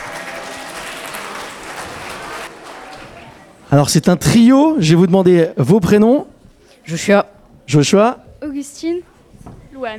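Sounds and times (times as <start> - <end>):
audience applauding students: 0.0 - 3.5
speech: 3.7 - 6.3, 6.9 - 9.1, 9.8 - 9.9.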